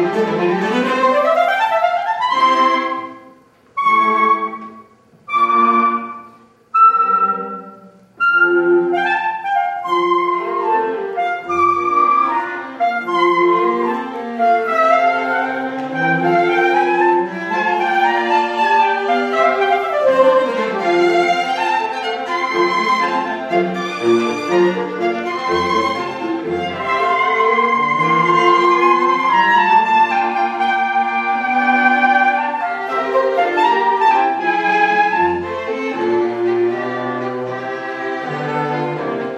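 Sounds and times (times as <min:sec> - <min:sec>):
oboe quartet playing: 0:00.0 - 0:39.3.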